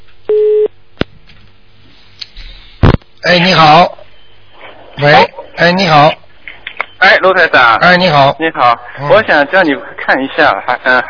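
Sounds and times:
telephone busy tone after dropped call: 0.3s - 0.7s
speech: 3.2s - 4.0s, 5.0s - 6.2s, 7.2s - 11.0s.

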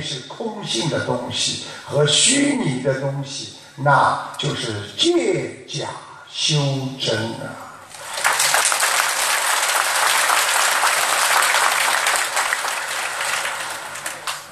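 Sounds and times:
speech: 0.0s - 7.6s
audience applause: 7.9s - 14.5s.

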